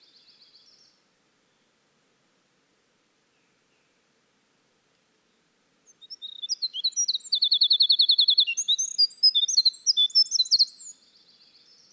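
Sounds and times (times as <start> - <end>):
winter wren singing: 5.9 - 10.9.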